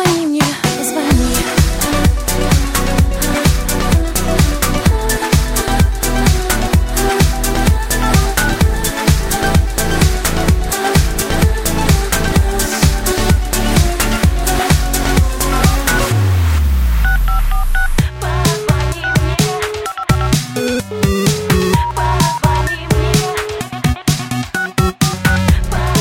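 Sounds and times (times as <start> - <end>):
busy rhythmic music: 0.0 - 25.9
telephone tones like electronic dialing beeps: 17.0 - 18.0, 19.0 - 22.8, 24.6 - 25.4.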